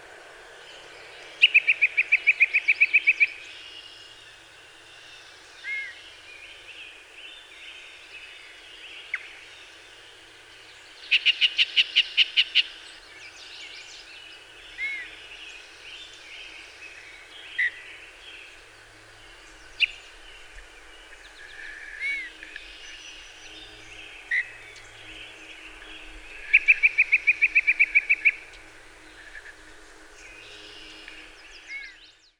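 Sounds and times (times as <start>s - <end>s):
Yellow-breasted Chat calling: 0.7s - 4.4s, 11.0s - 32.3s.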